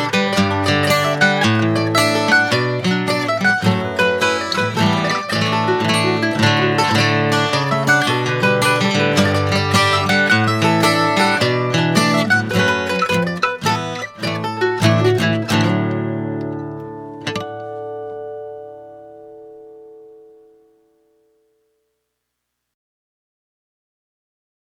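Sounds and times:
duo with mandolin playing a jig: 0:00.0 - 0:18.4.

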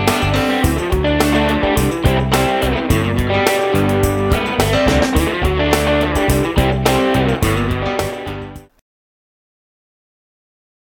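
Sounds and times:
cover band playing rock songs: 0:00.0 - 0:08.6.

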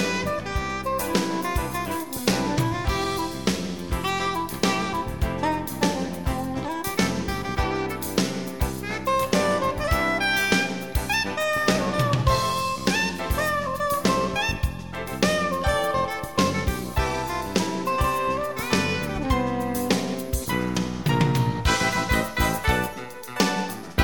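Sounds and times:
quartet playing: 0:00.0 - 0:24.0.

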